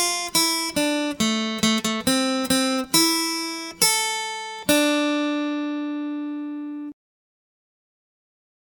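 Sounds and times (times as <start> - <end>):
acoustic guitar accompaniment: 0.0 - 7.0.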